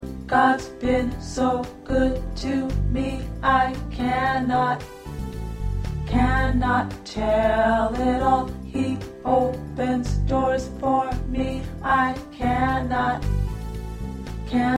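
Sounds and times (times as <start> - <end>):
tenor choir part singing: 0.3 - 5.0, 6.1 - 13.4, 14.5 - 14.7.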